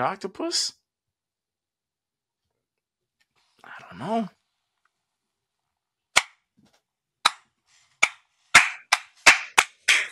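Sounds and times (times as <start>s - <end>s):
speech: 0.0s - 0.8s, 3.6s - 4.4s
hand clapping: 8.0s - 10.1s.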